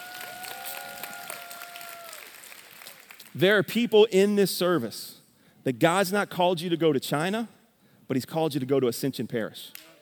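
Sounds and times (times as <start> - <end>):
crowd clapping: 0.0 - 3.4
speech: 3.4 - 9.9.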